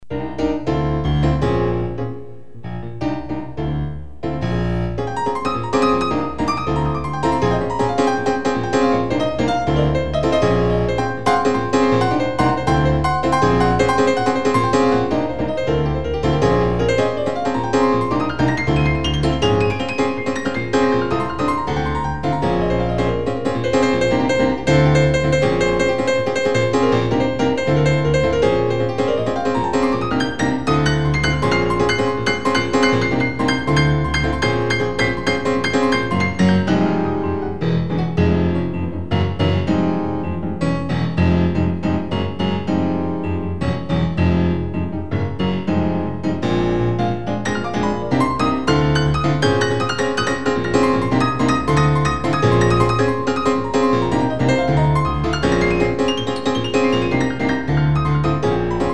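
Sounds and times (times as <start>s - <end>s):
piano improvisation: 0.0s - 58.9s.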